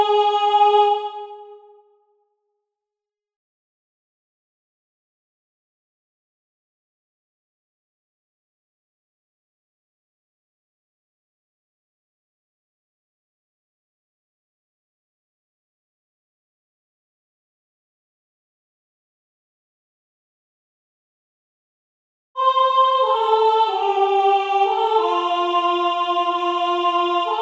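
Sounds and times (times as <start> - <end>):
soprano singing: 0.0 - 1.7, 22.4 - 27.4.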